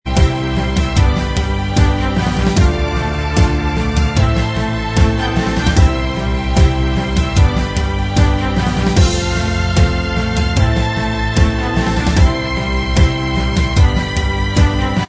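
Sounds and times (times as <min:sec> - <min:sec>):
instrumental backing track: 0:00.1 - 0:15.0.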